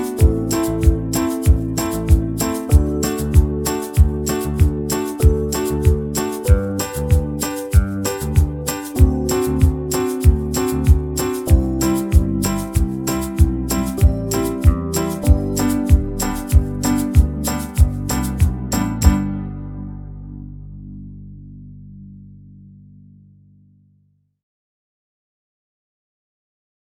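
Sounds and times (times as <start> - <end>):
slower banjo backing track in the key of G: 0.0 - 19.5.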